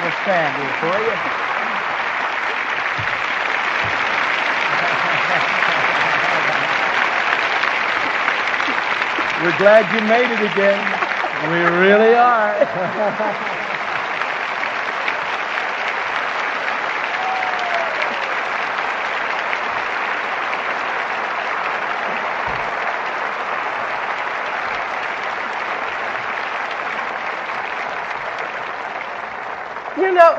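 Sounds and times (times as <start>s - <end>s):
audience applause: 0.0s - 30.3s
speech: 0.2s - 1.5s, 9.4s - 13.6s
laughter: 3.9s - 7.4s, 8.0s - 14.4s.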